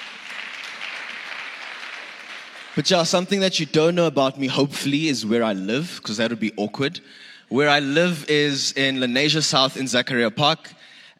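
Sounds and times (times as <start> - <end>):
audience applause: 0.0 - 3.2
speech: 2.8 - 11.1.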